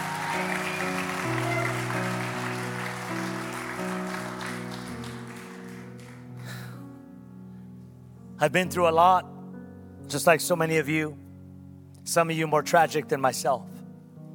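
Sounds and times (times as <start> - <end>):
audience clapping: 0.0 - 6.8
organ or keyboard chords: 0.0 - 6.8
speech: 8.4 - 9.3, 10.1 - 11.2, 12.0 - 13.7.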